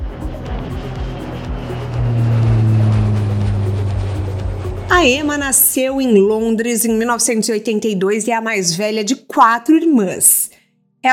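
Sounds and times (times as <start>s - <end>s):
small jet airplane engine roaring on takeoff: 0.0s - 6.5s
speech: 5.0s - 11.1s.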